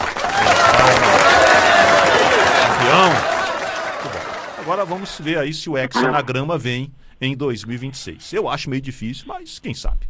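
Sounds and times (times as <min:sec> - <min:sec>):
applause and cheering for Brazil's national futsal team: 0:00.0 - 0:05.1
speech: 0:04.8 - 0:10.0.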